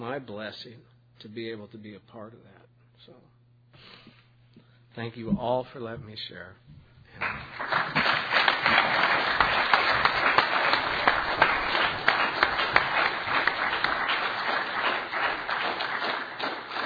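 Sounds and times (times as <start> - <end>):
speech: 0.0 - 4.0, 5.0 - 8.0
audience applause at a recovery meeting: 7.2 - 16.8.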